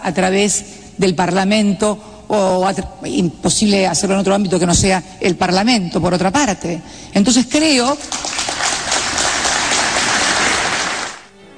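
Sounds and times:
speech: 0.0 - 8.3
final applause after a speech: 7.9 - 11.3.

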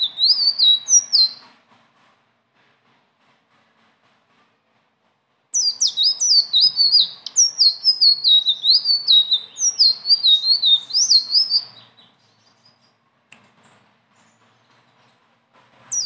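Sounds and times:
leafbird singing: 0.0 - 1.4, 5.6 - 13.0, 15.8 - 16.0.

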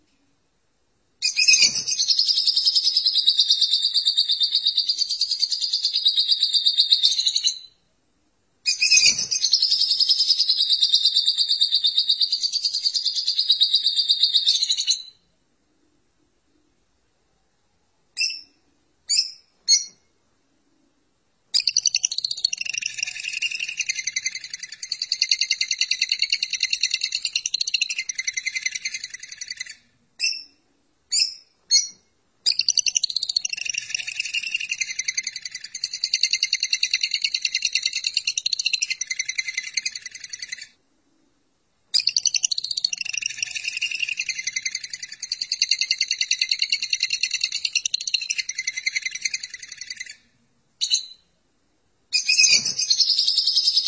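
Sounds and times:
lovebird chattering: 1.2 - 7.7, 8.7 - 15.1, 21.6 - 30.5, 31.1 - 40.7, 41.9 - 50.2, 52.1 - 53.8.

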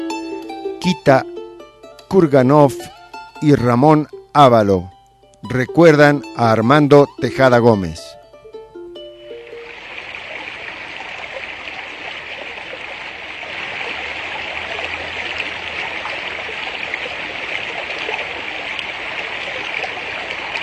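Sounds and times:
speech: 0.9 - 1.3, 2.1 - 4.9, 5.4 - 8.0
water flowing along an old ditch: 9.4 - 20.6.

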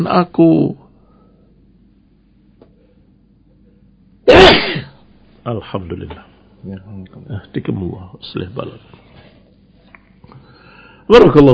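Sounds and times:
speech: 0.0 - 0.8, 5.5 - 9.3, 11.1 - 11.5
person sneezing: 4.3 - 5.0.

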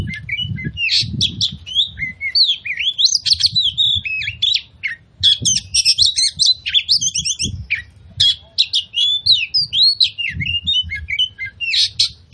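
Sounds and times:
Oriental magpie-robin chirping song used as a lure: 0.0 - 12.3.

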